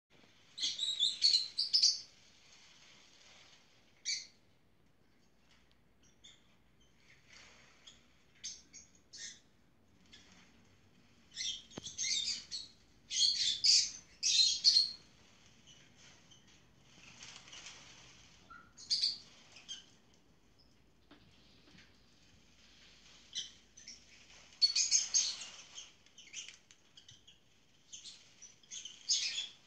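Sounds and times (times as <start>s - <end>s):
lovebird chirping and chattering: 0.6s - 2.2s, 4.0s - 4.3s, 7.8s - 9.4s, 11.3s - 17.6s, 18.4s - 19.9s, 23.0s - 29.6s.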